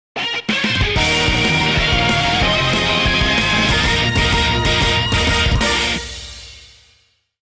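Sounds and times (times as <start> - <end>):
victory theme music: 1.0 - 6.8.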